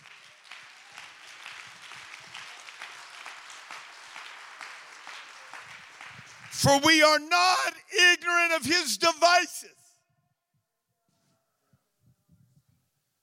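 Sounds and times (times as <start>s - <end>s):
audience clapping: 0.0s - 7.7s
speech: 6.6s - 9.8s.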